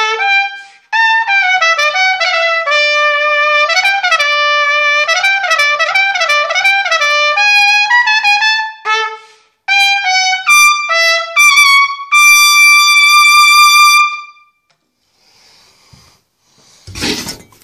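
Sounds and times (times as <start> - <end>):
trumpet: 0.0 - 14.7.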